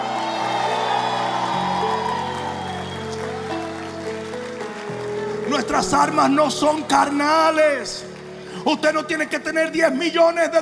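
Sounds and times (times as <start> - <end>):
audience shouting praise: 0.0 - 3.7
speech: 5.5 - 10.6.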